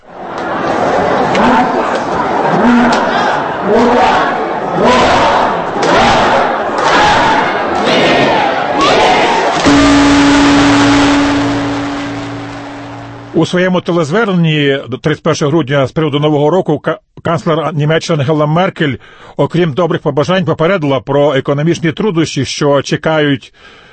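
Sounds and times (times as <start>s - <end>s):
huge crowd cheering at New Year in Tokyo: 0.0s - 13.4s
steady sustained tone: 9.6s - 13.4s
speech: 13.4s - 23.9s.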